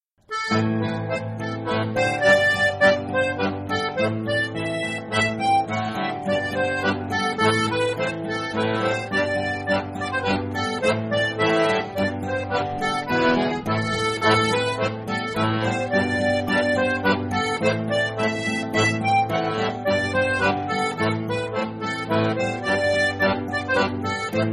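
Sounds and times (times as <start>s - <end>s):
Scottish branle dance tune: 0.3s - 24.5s.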